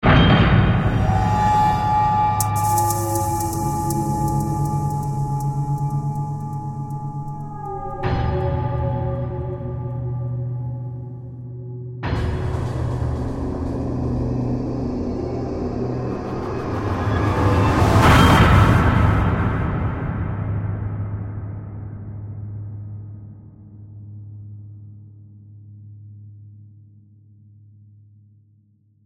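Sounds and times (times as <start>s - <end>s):
eerie tonal metallic horror hits: 0.0s - 22.4s.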